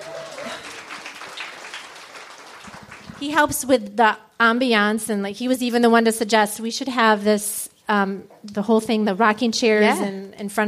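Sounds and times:
people cheering and whooping: 0.0 - 1.2
crowd applause: 0.0 - 3.4
speech: 3.2 - 10.6.

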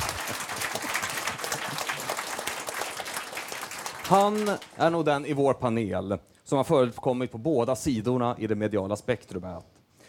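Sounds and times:
audience applause: 0.0 - 4.8
speech: 4.1 - 9.7.

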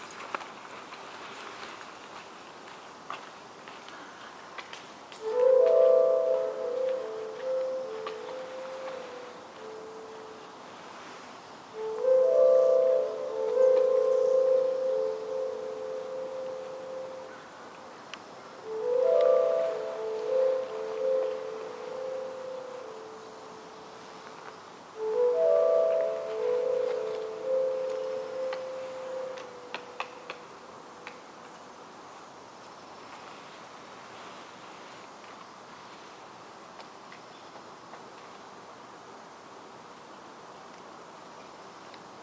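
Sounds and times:
faint hiss: 0.0 - 42.2
low tonal call in Forest Park's Upper Macleay section: 5.2 - 31.3.

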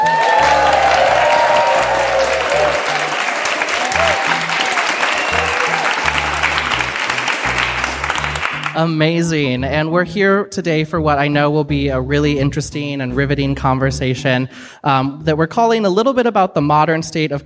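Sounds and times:
live audience applause at the Mill Valley Public Library: 0.0 - 8.8
speech: 8.8 - 17.4.

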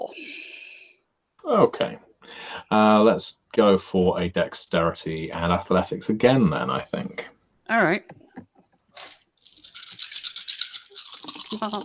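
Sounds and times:
speech: 1.5 - 8.2, 11.5 - 11.8
dice rattling in a cup: 9.0 - 11.8.

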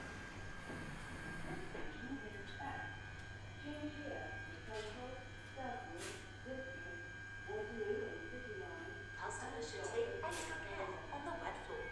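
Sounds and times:
empty Underground train humming with high whine: 0.0 - 11.9
muffled voices: 1.4 - 11.9.

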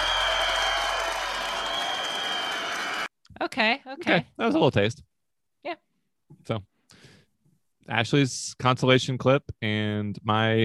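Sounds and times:
crowd cheering and applauding: 0.0 - 3.1
speech: 3.6 - 5.8, 6.4 - 6.7, 7.9 - 10.6.

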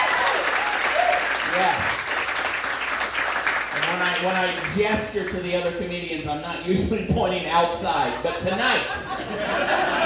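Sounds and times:
voices whooping: 0.0 - 1.4
crowd applause: 0.0 - 5.3
speech: 4.2 - 10.0
laughter: 7.9 - 10.0.

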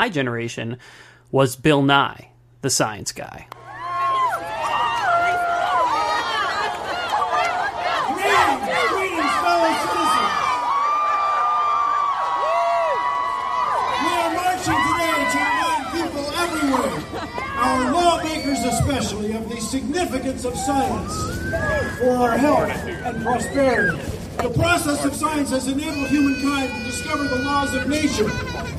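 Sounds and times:
speech: 0.0 - 3.6, 18.6 - 28.7
rally crowd cheering: 3.5 - 28.7
laughter: 4.6 - 10.4, 14.0 - 21.0, 24.6 - 28.7.

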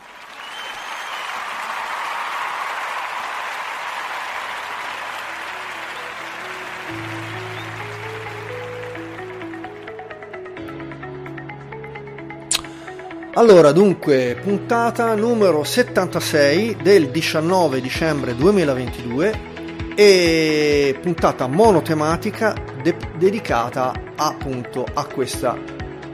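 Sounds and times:
applause sound effect: 0.0 - 10.2
speech: 13.4 - 25.8.

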